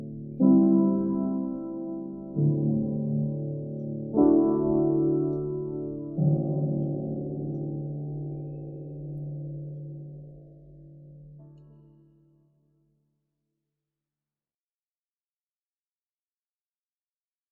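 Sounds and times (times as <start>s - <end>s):
Braunschweig upright piano: 0.0s - 12.2s.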